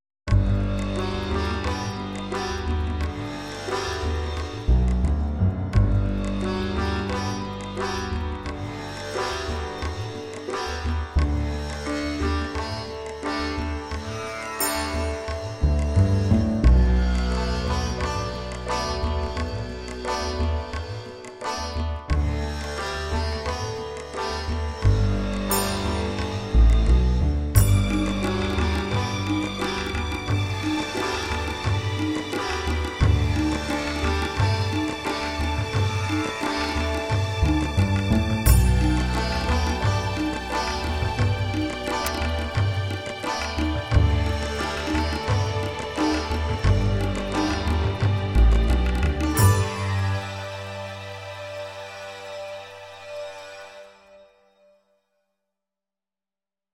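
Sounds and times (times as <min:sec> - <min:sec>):
backing track: 0:00.3 - 0:53.4.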